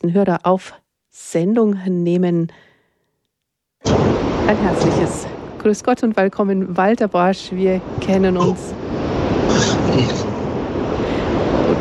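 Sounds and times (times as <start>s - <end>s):
speech: 0.0s - 2.7s, 3.8s - 10.3s
car driving noise over phone line: 9.4s - 11.7s.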